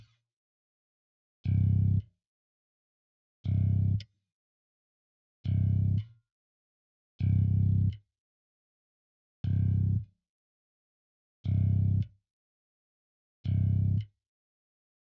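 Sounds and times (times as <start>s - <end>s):
bass: 1.4s - 2.1s, 3.4s - 4.1s, 5.4s - 6.2s, 7.2s - 8.0s, 9.4s - 10.1s, 11.4s - 12.1s, 13.4s - 14.1s.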